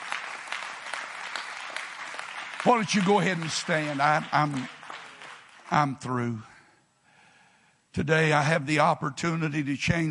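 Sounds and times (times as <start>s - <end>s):
audience clapping hands: 0.0s - 6.3s
speech: 2.6s - 4.8s, 5.7s - 6.5s, 7.9s - 10.0s.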